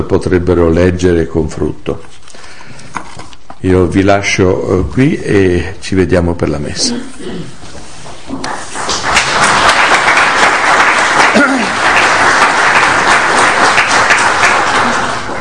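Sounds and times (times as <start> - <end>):
speech: 0.0 - 2.2, 3.6 - 7.6
audience applause: 8.4 - 15.4.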